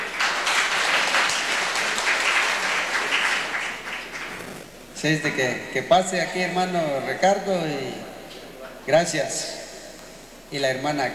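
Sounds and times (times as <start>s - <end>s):
audience applause: 0.0s - 4.7s
speech: 5.0s - 8.1s, 8.8s - 9.6s, 10.5s - 11.1s.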